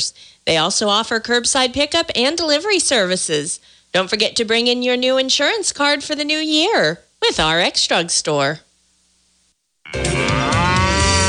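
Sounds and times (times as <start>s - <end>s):
speech: 0.0s - 8.7s, 9.9s - 10.2s
cow mooing: 9.9s - 11.2s.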